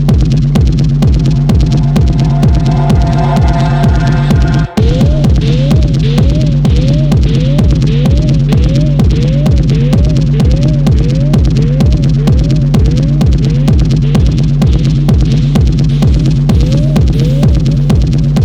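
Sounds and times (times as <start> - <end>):
techno music: 0.2 - 18.3.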